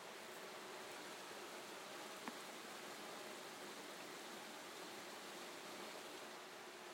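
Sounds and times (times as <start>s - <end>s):
heavy rain downpour: 0.0s - 6.9s.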